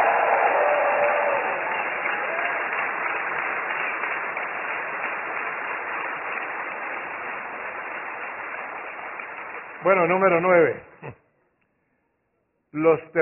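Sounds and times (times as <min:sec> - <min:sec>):
audience applause: 0:00.0 - 0:10.7
speech: 0:09.8 - 0:11.2, 0:12.8 - 0:13.2.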